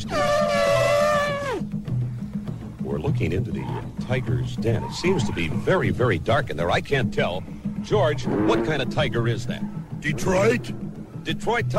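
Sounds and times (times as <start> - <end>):
Asian elephant Elephas Maximus trumpeting: 0.0 - 1.7, 3.3 - 6.3, 7.7 - 11.4
speech: 3.0 - 11.7.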